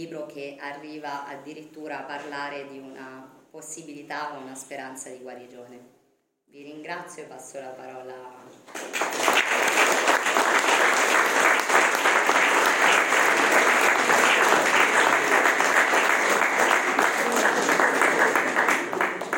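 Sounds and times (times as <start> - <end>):
speech: 0.0 - 10.5
applause: 8.6 - 19.3.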